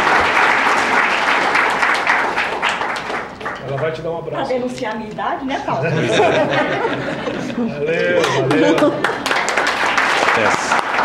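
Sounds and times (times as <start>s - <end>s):
audience clapping at a Brazilian Senate event: 0.0s - 4.2s, 8.2s - 11.0s
speech: 3.9s - 9.3s, 10.4s - 10.7s
laughter: 5.5s - 9.6s.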